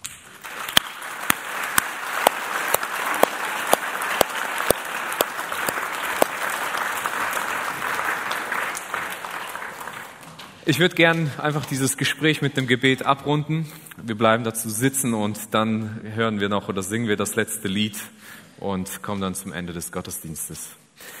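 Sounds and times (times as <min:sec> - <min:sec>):
audience applause: 0:00.3 - 0:10.6
speech: 0:10.7 - 0:21.1.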